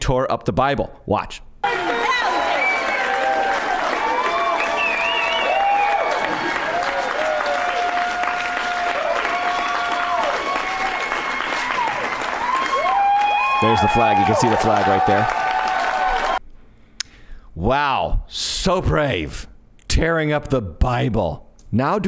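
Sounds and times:
speech: 0.0 - 1.9, 13.6 - 15.4, 17.6 - 22.0
large crowd cheering: 1.6 - 16.4
many voices shouting and whooping: 1.6 - 16.4.

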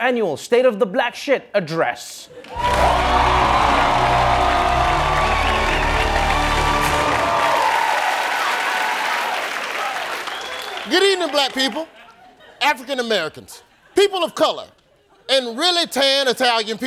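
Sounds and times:
speech: 0.0 - 3.3, 10.9 - 12.0, 12.6 - 16.8
cheers and whoops: 2.5 - 10.9
studio audience applauding: 2.5 - 12.0.

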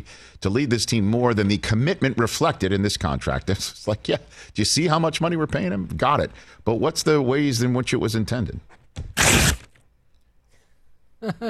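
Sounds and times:
speech: 0.0 - 9.5, 11.2 - 11.4
paper ripped into a microphone: 9.0 - 9.8.

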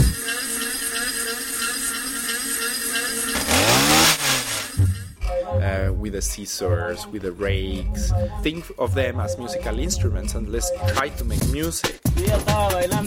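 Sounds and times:
leaf blower two-stroke engine: 0.2 - 4.8
speech: 6.2 - 13.0.

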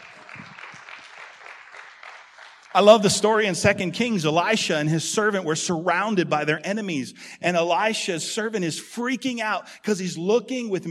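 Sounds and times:
crowd applauding: 0.0 - 3.4
speech: 2.8 - 10.8.

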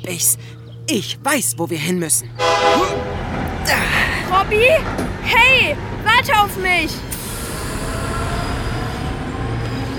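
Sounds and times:
speech: 0.0 - 3.1, 3.7 - 7.2
ICE high-speed train running on rails: 2.4 - 9.9.

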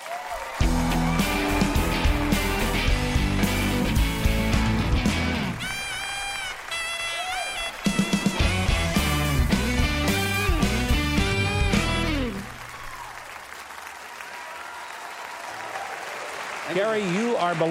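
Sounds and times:
theater audience applauding and cheering a guest actor: 0.0 - 17.6
speech: 16.8 - 17.6.

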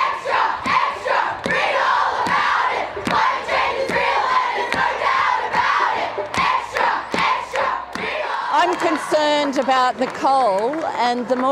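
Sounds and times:
large climate protest crowd shouting and chanting: 0.0 - 9.2
speech: 8.7 - 11.5.

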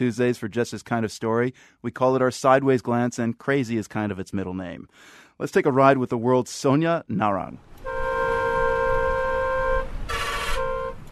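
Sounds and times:
speech: 0.0 - 7.9
truck horn blaring: 7.8 - 11.1.

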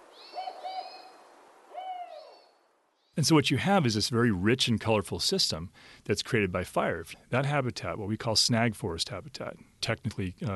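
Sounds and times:
spotted owl hooting: 0.0 - 2.5
speech: 3.2 - 10.5.

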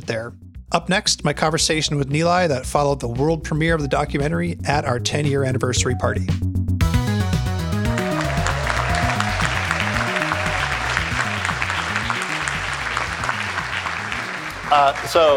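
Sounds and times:
speech: 0.1 - 6.5, 14.7 - 15.3
audience clapping: 7.6 - 15.3.

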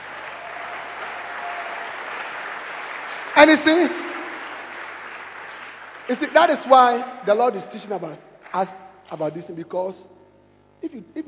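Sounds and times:
audience applause: 0.0 - 7.0
speech: 3.4 - 4.0, 6.1 - 10.2, 10.8 - 11.2.

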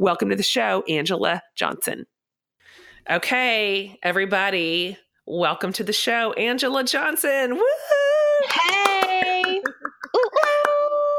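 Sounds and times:
speech: 0.0 - 2.1, 3.0 - 8.9
person whooping and cheering: 7.6 - 11.1
hand claps: 8.4 - 11.0.

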